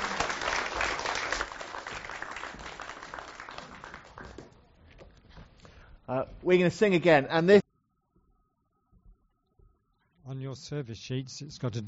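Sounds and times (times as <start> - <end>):
crowd applauding: 0.0 - 4.7
speech: 6.1 - 7.6, 10.6 - 11.8.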